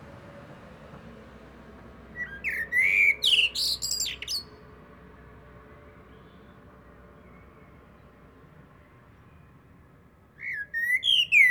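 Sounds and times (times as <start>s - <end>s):
Common blackbird song phrase: 2.2s - 4.5s, 10.4s - 11.4s.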